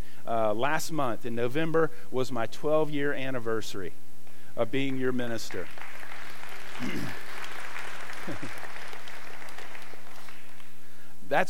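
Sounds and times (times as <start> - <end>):
speech: 0.3 - 4.0, 4.6 - 6.0, 6.8 - 7.2, 8.2 - 8.6, 11.3 - 11.4
audience applause: 5.5 - 10.7.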